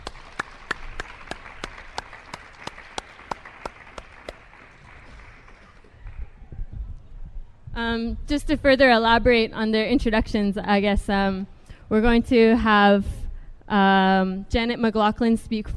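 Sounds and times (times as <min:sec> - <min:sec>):
audience applause: 0:00.0 - 0:06.4
speech: 0:07.8 - 0:15.7.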